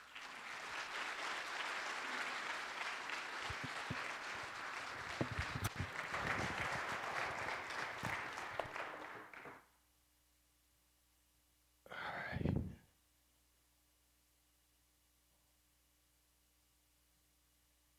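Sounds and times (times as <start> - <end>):
church congregation clapping to welcome a guest pastor: 0.0 - 9.7.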